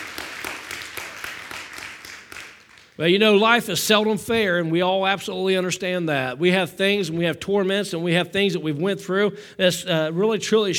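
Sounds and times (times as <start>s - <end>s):
congregation clapping hands in praise during a church service: 0.0s - 3.4s
speech: 3.0s - 10.7s.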